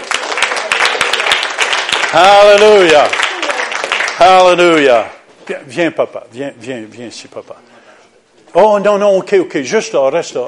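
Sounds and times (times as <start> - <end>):
audience applauding: 0.0 - 4.9
speech: 2.1 - 3.2, 4.2 - 7.8, 8.5 - 10.4.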